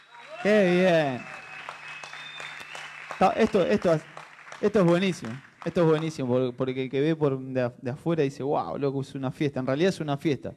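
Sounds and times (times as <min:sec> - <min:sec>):
audience applause: 0:00.0 - 0:06.5
speech: 0:00.4 - 0:01.4, 0:03.2 - 0:10.5.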